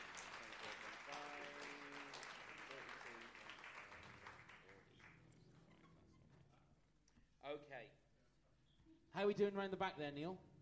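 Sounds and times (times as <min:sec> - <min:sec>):
room full of people applauding: 0:00.0 - 0:06.1
speech: 0:07.5 - 0:08.0, 0:09.2 - 0:10.5.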